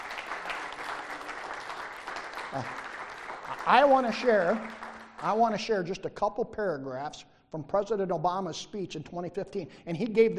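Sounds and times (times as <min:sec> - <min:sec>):
audience applause for veterans: 0:00.0 - 0:05.7
speech: 0:02.5 - 0:02.8, 0:03.6 - 0:10.3.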